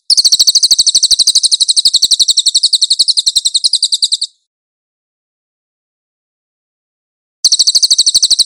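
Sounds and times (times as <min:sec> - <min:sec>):
cililin chattering trills: 0:00.1 - 0:04.4, 0:07.4 - 0:08.4.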